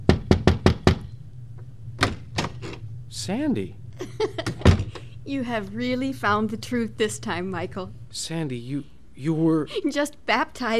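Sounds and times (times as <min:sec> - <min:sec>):
knocking on a door: 0:00.0 - 0:01.1
speech: 0:03.1 - 0:04.6, 0:05.3 - 0:10.7.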